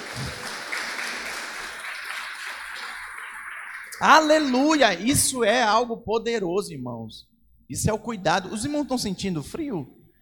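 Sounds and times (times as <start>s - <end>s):
audience applause: 0.0s - 4.6s
speech: 4.0s - 10.0s.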